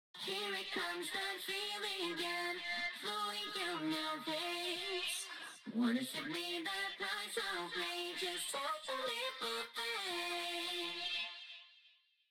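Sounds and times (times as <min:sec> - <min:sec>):
premixed background vocals: 0:00.2 - 0:11.8.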